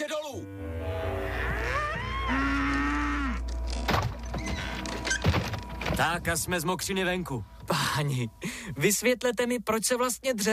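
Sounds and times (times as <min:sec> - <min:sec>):
cattle mooing: 0:00.4 - 0:03.8
low steady hum: 0:00.4 - 0:10.5
speech: 0:06.0 - 0:10.5.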